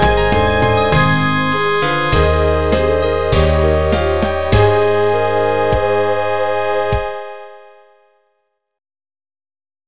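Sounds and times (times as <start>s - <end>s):
national anthem in MIDI: 0.0s - 7.9s.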